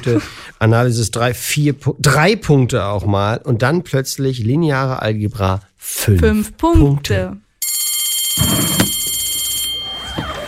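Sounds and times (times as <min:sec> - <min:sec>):
speech: 0:00.0 - 0:07.4, 0:08.4 - 0:08.7
ringing bell signalling time is up: 0:07.6 - 0:10.4.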